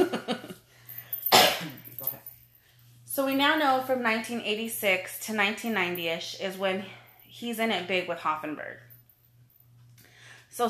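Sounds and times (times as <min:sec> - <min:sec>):
person coughing from an itchy throat: 0:01.2 - 0:01.9
speech: 0:03.2 - 0:08.9.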